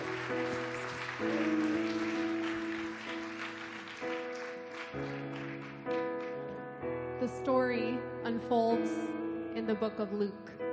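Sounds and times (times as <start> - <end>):
audience hand clapping: 0.0 - 6.6
speech: 7.4 - 10.6.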